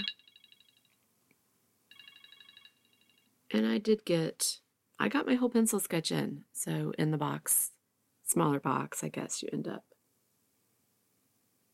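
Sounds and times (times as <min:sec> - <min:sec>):
timer alarm beeping: 0:00.0 - 0:00.8
speech: 0:03.5 - 0:09.9.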